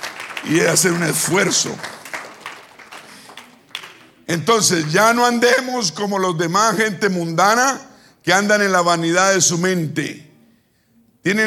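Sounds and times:
audience applauding: 0.0s - 5.1s
speech: 0.4s - 2.0s, 4.3s - 10.3s, 11.2s - 11.4s.

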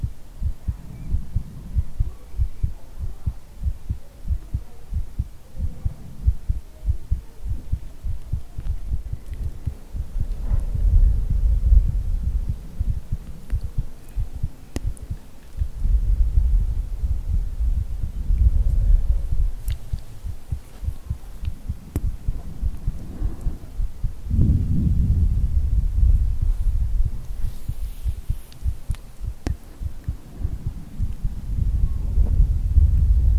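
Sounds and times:
muffled heartbeat: 0.0s - 33.3s
rumbling ear blowing bursts: 5.1s - 33.3s
faint clicks: 8.2s - 10.7s, 13.2s - 15.7s, 19.6s - 23.6s, 28.5s - 31.3s.

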